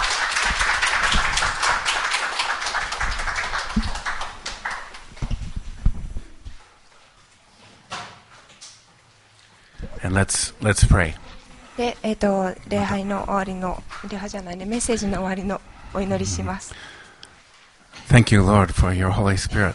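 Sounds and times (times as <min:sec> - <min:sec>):
audience clapping: 0:00.0 - 0:05.5
speech: 0:10.1 - 0:11.2, 0:11.8 - 0:17.0, 0:18.1 - 0:19.7.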